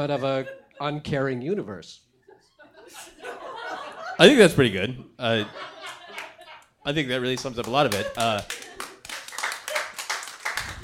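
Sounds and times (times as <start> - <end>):
speech: 0.0 - 2.1, 4.2 - 5.7, 6.8 - 8.6
laughter: 0.0 - 9.1
bowling alley theater audience applause: 7.3 - 10.8.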